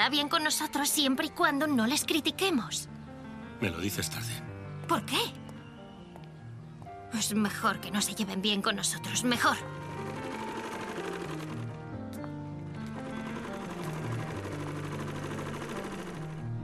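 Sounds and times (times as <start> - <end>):
speech: 0.0 - 3.0, 3.6 - 5.4, 7.1 - 10.1
sewing machine stitching a fabric cover for a Quran: 9.4 - 16.5.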